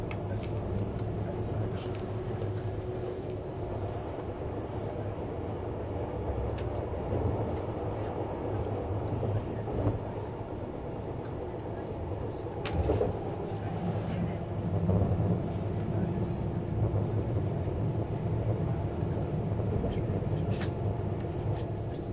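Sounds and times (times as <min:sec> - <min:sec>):
Swiss tilting ICN train RABDe500 running on the Gotthard line: 0:00.0 - 0:22.1
faint murmuring voices: 0:00.0 - 0:22.1
loud train jolt: 0:06.2 - 0:21.6.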